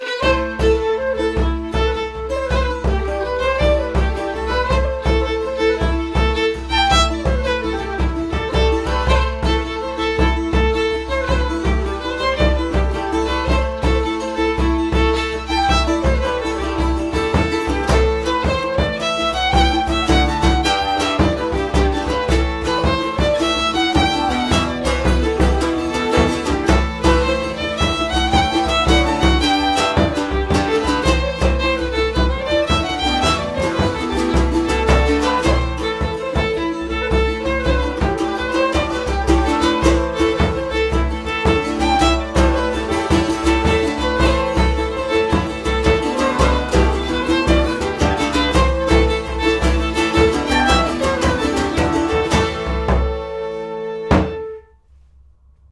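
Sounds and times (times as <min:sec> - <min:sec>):
orchestra ambience: 0:00.0 - 0:54.7.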